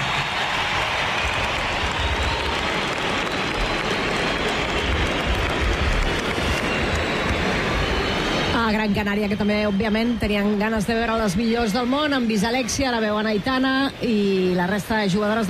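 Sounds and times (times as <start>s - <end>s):
crowd ovation for a player: 0.0s - 15.4s
speech: 9.0s - 15.4s.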